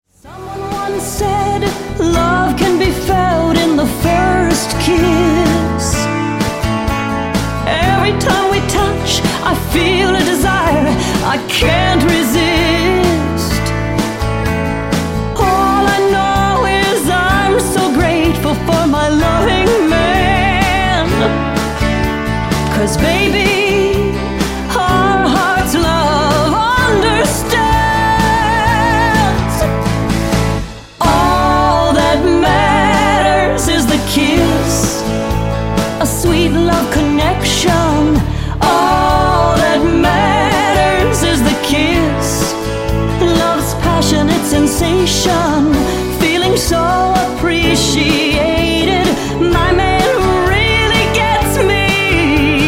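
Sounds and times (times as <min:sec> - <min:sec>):
country singer singing: 0:00.0 - 0:52.6.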